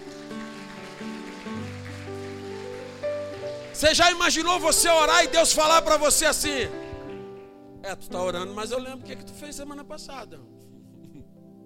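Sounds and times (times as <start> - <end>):
audience applause: 0.0 - 5.2
speech: 3.8 - 6.8, 7.9 - 10.6.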